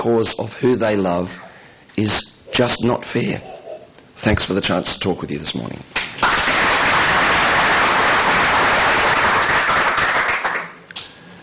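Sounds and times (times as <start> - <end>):
speech: 0.0 - 3.6, 4.2 - 6.4
audience applause: 6.2 - 10.8.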